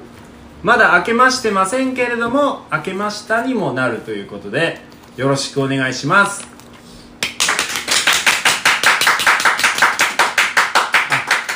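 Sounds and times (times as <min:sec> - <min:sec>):
speech: 0:00.6 - 0:06.5
audience applause: 0:07.2 - 0:11.5.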